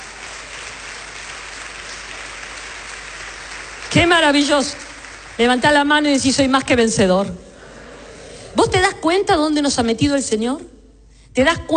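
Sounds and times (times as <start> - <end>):
audience applause: 0.0 - 5.8
speech: 3.9 - 4.8, 5.4 - 7.4, 8.6 - 10.7, 11.4 - 11.7.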